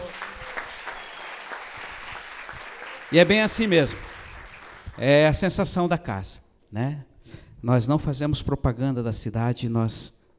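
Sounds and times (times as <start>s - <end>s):
audience applause: 0.0s - 5.0s
speech: 3.1s - 4.1s, 5.0s - 10.2s.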